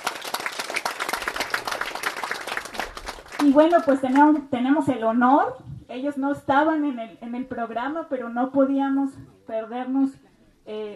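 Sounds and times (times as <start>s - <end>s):
audience applause at a panel session: 0.0s - 3.9s
speech: 3.4s - 10.9s.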